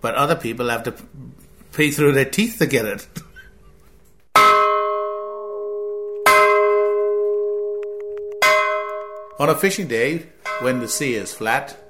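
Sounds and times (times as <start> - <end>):
speech: 0.0 - 3.2, 9.4 - 11.8
large bell rung to signal a fishing day: 4.4 - 11.8.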